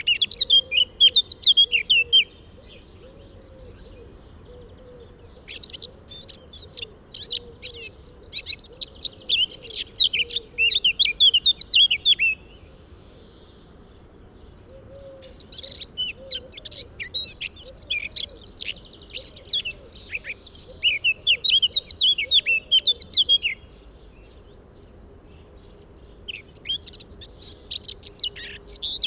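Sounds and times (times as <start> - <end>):
Eurasian blackcap singing: 0.0 - 2.9, 4.9 - 12.6, 15.2 - 24.6, 26.0 - 29.0.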